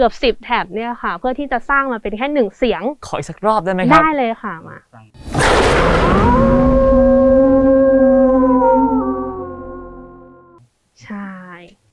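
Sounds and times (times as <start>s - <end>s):
speech: 0.0s - 6.6s
designed creature howl layered from dogs, wolves and tigers: 5.9s - 10.2s.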